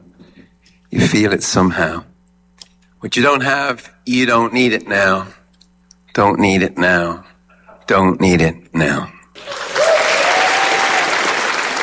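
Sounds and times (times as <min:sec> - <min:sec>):
speech: 0:01.1 - 0:02.1, 0:03.0 - 0:05.4, 0:06.2 - 0:07.3, 0:07.9 - 0:09.6
audience applause in the church of San Patricio: 0:09.4 - 0:11.8.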